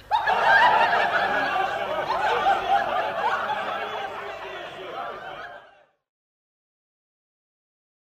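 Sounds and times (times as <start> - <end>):
noisy merry crowd laughing and chattering: 0.0 - 5.9.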